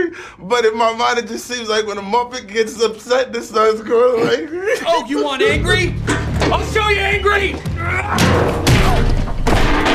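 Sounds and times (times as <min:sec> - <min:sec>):
speech: 0:00.0 - 0:08.6
chair thrown at a two-way mirror bouncing off: 0:06.0 - 0:06.8, 0:07.5 - 0:09.9.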